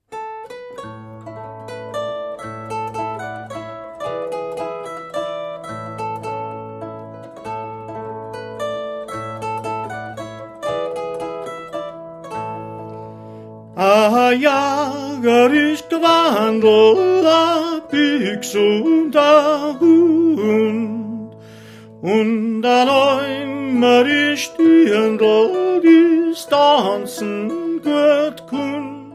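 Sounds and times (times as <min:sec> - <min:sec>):
Upper Bavarian folk song singing: 0:13.8 - 0:29.1.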